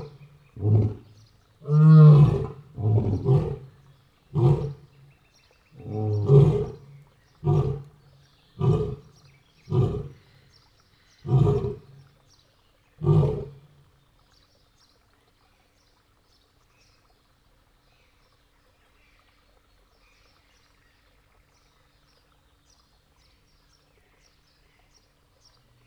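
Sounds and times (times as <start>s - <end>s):
male lion roaring in the morning at a zoo: 0.0s - 5.0s, 5.8s - 8.0s, 8.6s - 10.3s, 11.2s - 12.1s, 13.0s - 13.7s.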